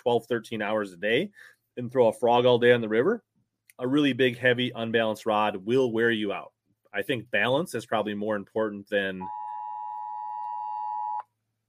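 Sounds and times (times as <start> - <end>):
speech: 0.0 - 9.4
weather alert high-pitched electronic beep: 9.2 - 11.2.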